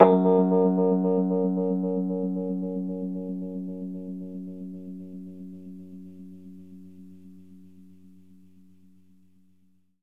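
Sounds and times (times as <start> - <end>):
Rhodes electric piano playing fast in F-sharp: 0.0 - 6.5.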